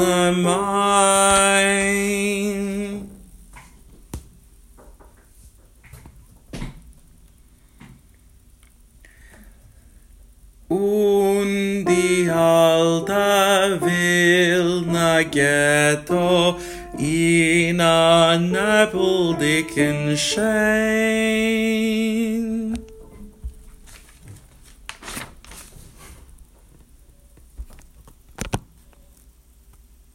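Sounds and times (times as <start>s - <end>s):
soprano singing a verse in sections: 0.0s - 3.2s, 10.7s - 23.4s.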